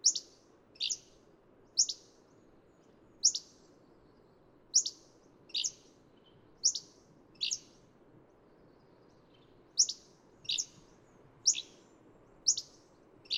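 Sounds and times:
Hammond's flycatcher calling with sharp chips and burry notes: 0.0 - 1.2, 1.8 - 2.1, 3.2 - 3.6, 4.7 - 5.9, 6.6 - 7.8, 9.8 - 13.3.

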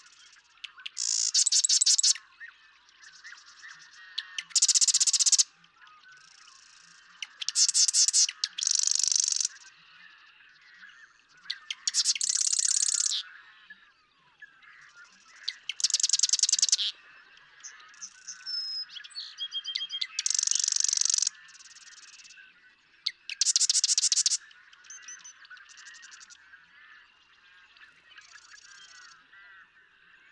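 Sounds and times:
faint bird calls: 0.0 - 30.3
Marsh Wren buzzy rattling song: 0.7 - 2.2, 4.2 - 5.5, 7.2 - 9.6, 11.5 - 13.2, 15.4 - 16.9, 20.0 - 22.3, 23.1 - 24.4.

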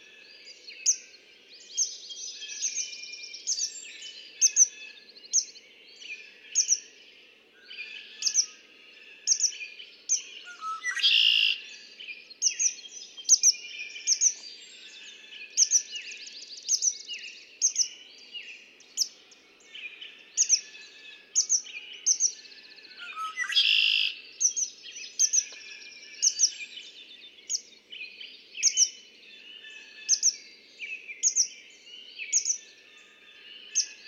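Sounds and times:
red-winged blackbird song: 0.0 - 34.0.

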